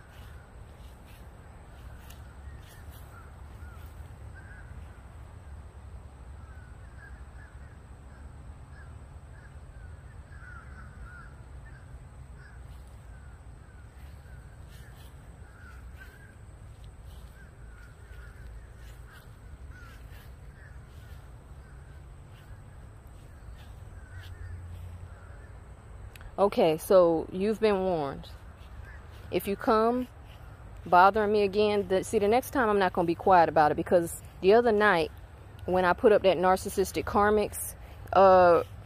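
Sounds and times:
crows cawing outdoors: 8.7 - 11.8, 12.4 - 16.4, 17.1 - 22.6, 23.3 - 25.5
speech: 26.4 - 28.4, 29.3 - 30.2, 30.8 - 35.1, 35.7 - 38.7.

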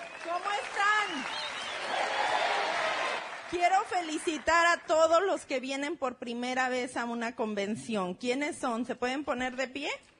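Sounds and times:
audience applause: 0.0 - 4.5
speech: 3.5 - 10.1.

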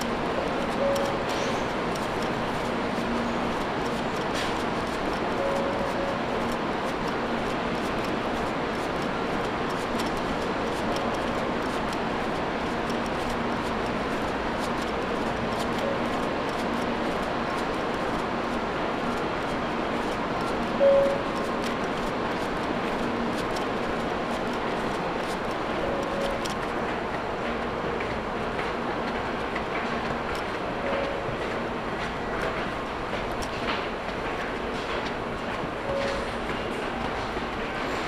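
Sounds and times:
Tokaido Shinkansen Kodama train running from Nagoya toward Toyohashi: 0.0 - 38.0.

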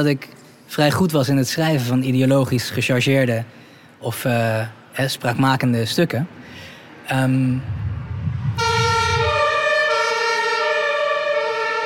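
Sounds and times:
speech: 0.0 - 7.8
ambulance siren passing: 8.0 - 11.8.

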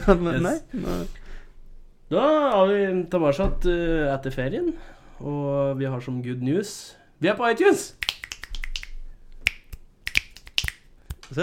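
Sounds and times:
speech: 0.0 - 1.2, 2.1 - 8.1
fingers snapping: 8.0 - 11.4.

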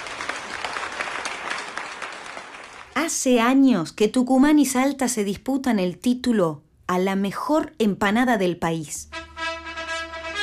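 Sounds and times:
crowd clapping: 0.0 - 3.2
speech: 3.1 - 9.2.

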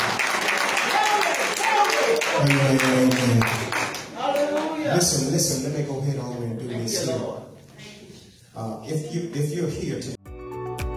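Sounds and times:
audience clapping hands: 0.0 - 4.8
speech: 2.4 - 3.8, 5.0 - 7.5, 8.6 - 10.2.

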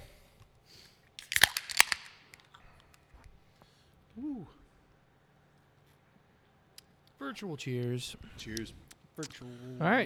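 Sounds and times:
beer can cracking open: 1.2 - 3.0
speech: 4.2 - 4.6, 7.2 - 10.0.

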